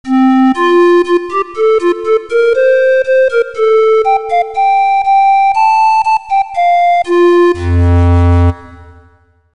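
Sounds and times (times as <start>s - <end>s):
clarinet: 0.1s - 9.1s.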